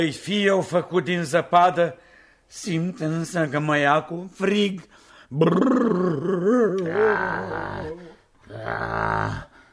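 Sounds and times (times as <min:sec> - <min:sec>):
speech: 0:00.0 - 0:09.5
voice imitating a wolf howling: 0:05.4 - 0:09.5.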